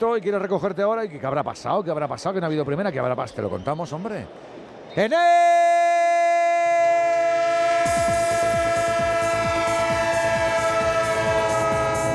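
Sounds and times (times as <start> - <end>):
speech: 0.0 - 5.8
train horn blaring a sustained chord: 7.0 - 12.1.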